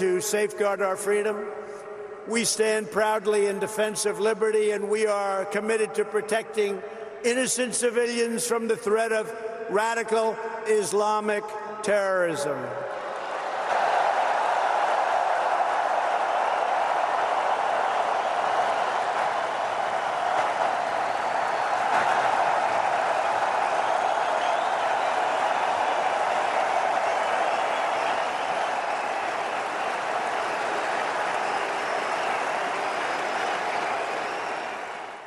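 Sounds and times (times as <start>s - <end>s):
speech: 0.0s - 13.0s
lengthy applause in a packed arena: 12.9s - 35.2s.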